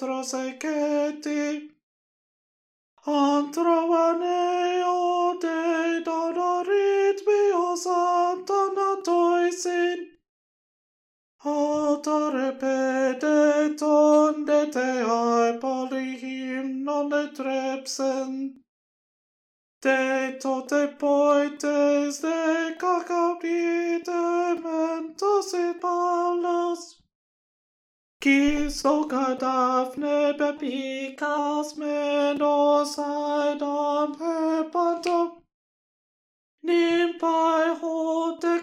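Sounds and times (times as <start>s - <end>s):
alto voice singing a hymn: 0.0s - 1.7s, 3.0s - 10.1s, 11.4s - 18.6s, 19.8s - 27.0s, 28.2s - 35.4s, 36.6s - 38.6s.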